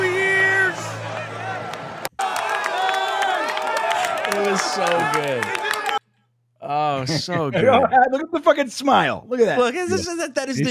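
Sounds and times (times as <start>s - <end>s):
stadium crowd cheering: 0.0s - 6.0s
crowd clapping: 1.4s - 6.0s
speech: 4.8s - 5.6s, 7.0s - 10.6s.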